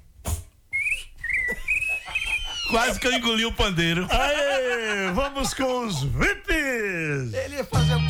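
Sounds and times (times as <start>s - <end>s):
person whistling an imitation of a little bird: 0.7s - 2.6s
laughter: 1.5s - 8.0s
speech: 2.7s - 8.0s.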